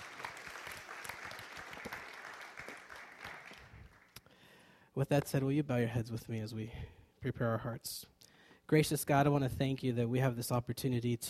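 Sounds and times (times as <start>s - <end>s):
audience clapping: 0.0s - 4.3s
speech: 5.0s - 8.1s, 8.7s - 11.2s.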